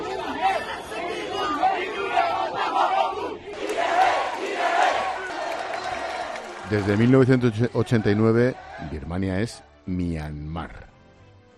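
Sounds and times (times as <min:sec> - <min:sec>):
protesters shouting in the streets: 0:00.0 - 0:09.1
speech: 0:06.7 - 0:10.9.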